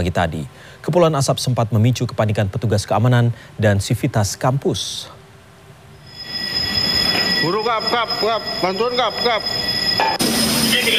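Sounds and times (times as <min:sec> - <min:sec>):
speech: 0:00.0 - 0:05.2, 0:07.4 - 0:10.9
fire alarm wailing: 0:06.0 - 0:10.9.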